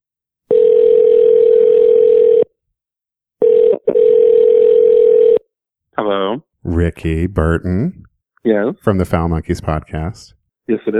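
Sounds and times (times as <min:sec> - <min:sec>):
telephone ringback tone on an outgoing call: 0:00.5 - 0:02.5, 0:03.4 - 0:05.4
speech: 0:06.3 - 0:10.9.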